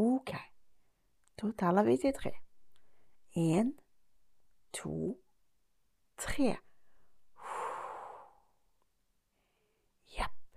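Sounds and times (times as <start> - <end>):
speech: 1.4 - 2.4, 3.4 - 3.8, 4.7 - 5.2, 6.2 - 6.7
puff of breath blowing out birthday candles: 7.4 - 8.5.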